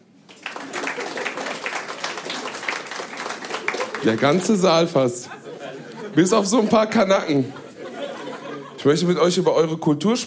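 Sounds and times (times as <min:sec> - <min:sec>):
audience applause: 0:00.2 - 0:04.9
laughter: 0:00.6 - 0:09.4
speech: 0:04.0 - 0:05.4, 0:06.1 - 0:07.6, 0:08.8 - 0:10.2.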